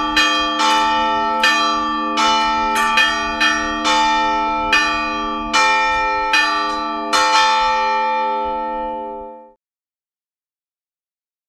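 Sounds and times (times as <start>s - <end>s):
bell tower chiming in good weather: 0.0s - 9.6s.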